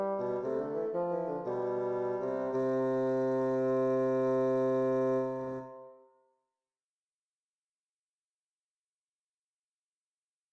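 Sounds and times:
two bassoons playing a duet in C major: 0:00.0 - 0:06.0.

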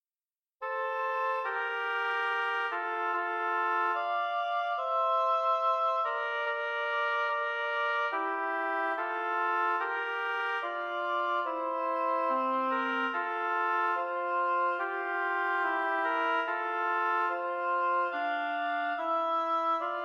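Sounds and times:
oboe duet: 0:00.6 - 0:20.0.

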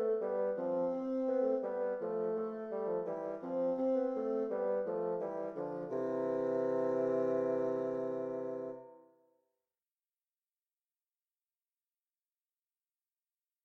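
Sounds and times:
bassoon duet: 0:00.0 - 0:09.0.

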